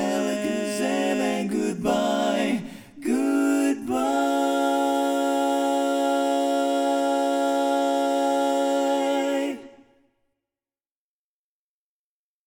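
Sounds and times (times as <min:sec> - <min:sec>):
bass chorus singing: 0:00.0 - 0:09.9.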